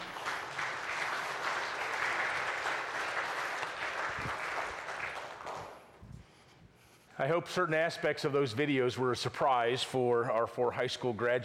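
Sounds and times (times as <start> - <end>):
audience applause: 0.0 - 5.9
speech: 7.2 - 11.4.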